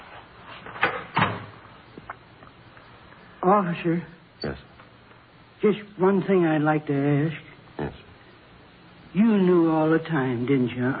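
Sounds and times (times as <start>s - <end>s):
door opening and closing: 0.7s - 1.6s
speech: 3.4s - 4.7s, 5.6s - 8.0s, 9.2s - 10.9s.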